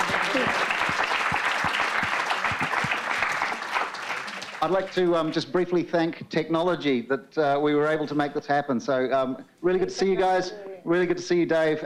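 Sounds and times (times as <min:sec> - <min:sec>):
audience applause for panelists: 0:00.0 - 0:05.3
speech: 0:04.6 - 0:11.8.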